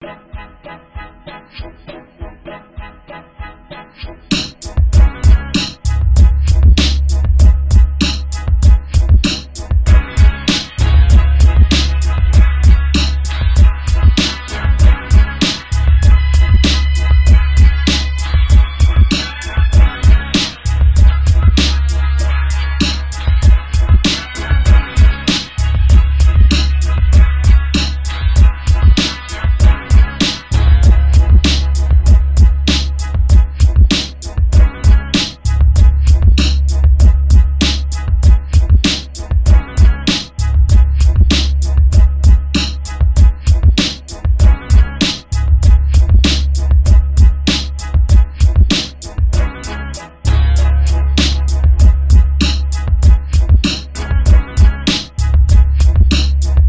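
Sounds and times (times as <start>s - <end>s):
music beat: 4.0s - 56.6s.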